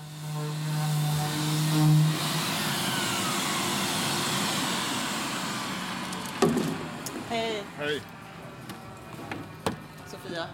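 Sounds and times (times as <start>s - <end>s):
power sander sanding plywood: 0.0s - 7.5s
speech: 7.3s - 8.2s, 10.3s - 10.5s.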